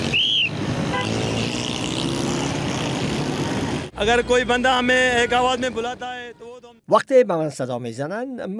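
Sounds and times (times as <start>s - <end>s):
busy street traffic roar: 0.0s - 6.8s
car horn toot: 0.9s - 1.2s
speech: 4.0s - 8.5s.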